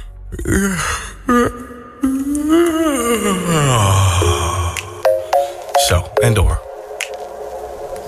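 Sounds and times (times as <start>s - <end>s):
person yawning: 0.0s - 5.0s
voiced breaths: 0.0s - 5.8s
speech: 0.3s - 1.6s, 6.2s - 6.6s.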